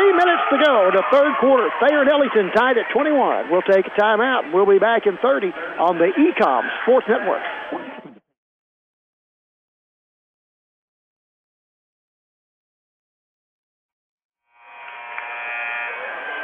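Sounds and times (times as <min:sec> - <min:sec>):
speech: 0:00.4 - 0:07.9
basketball game buzzer: 0:14.5 - 0:16.4.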